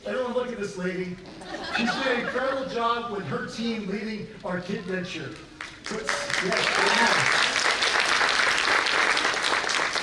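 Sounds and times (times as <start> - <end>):
speech: 0.5 - 7.5
laughter: 1.2 - 3.2
crowd applauding: 5.3 - 10.0.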